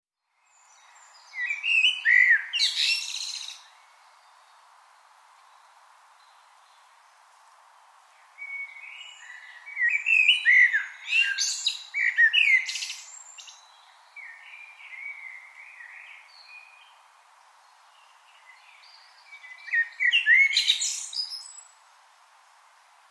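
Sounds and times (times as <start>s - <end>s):
low hiss: 0.2s - 23.0s
common blackbird singing: 0.6s - 4.4s, 8.4s - 17.0s, 18.0s - 21.7s.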